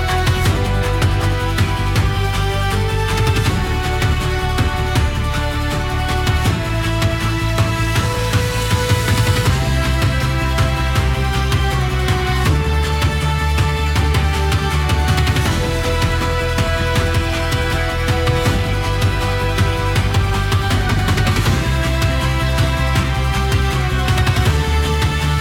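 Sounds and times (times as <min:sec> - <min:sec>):
in-game battle music: 0:00.0 - 0:25.3.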